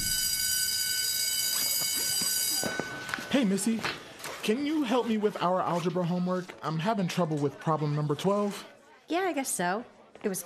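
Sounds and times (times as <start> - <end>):
school class bell ringing: 0.0 - 3.9
speech: 2.6 - 10.4.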